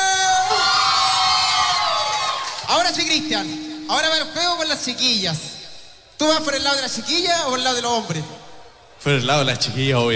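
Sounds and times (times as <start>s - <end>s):
crowd cheering and shouting for someone being honored: 0.0s - 3.0s
speech: 2.9s - 5.5s, 6.2s - 8.4s, 9.0s - 10.1s.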